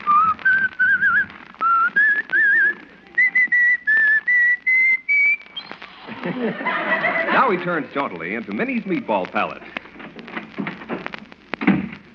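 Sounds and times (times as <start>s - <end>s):
man whistling a cheerful bouncy tune: 0.0s - 5.8s
laughter: 2.1s - 3.4s, 5.8s - 10.2s
speech: 7.5s - 9.8s.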